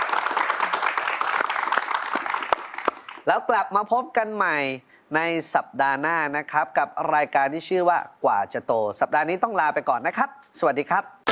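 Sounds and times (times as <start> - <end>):
audience applause: 0.0 - 3.2
speech: 3.2 - 11.2.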